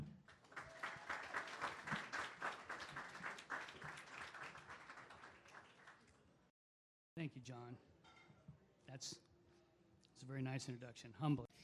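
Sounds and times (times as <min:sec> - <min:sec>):
audience applause: 0:00.3 - 0:06.2
speech: 0:07.2 - 0:07.9, 0:08.9 - 0:09.3, 0:10.2 - 0:11.5.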